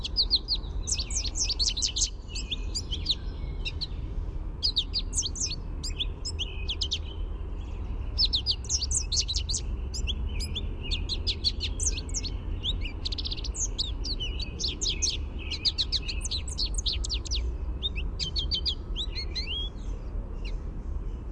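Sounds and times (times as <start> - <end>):
American goldfinch twittering: 0.0 - 3.8, 8.1 - 19.7
low steady hum: 0.0 - 21.3.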